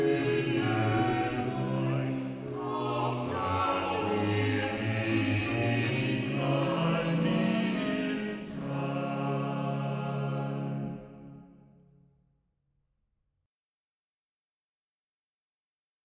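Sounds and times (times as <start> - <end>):
chorale cantata chorus singing: 0.0 - 11.6.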